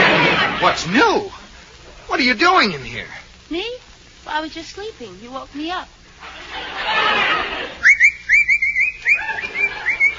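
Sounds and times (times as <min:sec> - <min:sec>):
laughter: 0:00.0 - 0:01.1, 0:06.2 - 0:10.1
speech: 0:00.7 - 0:01.4, 0:02.2 - 0:08.0
person whistling: 0:07.8 - 0:10.1.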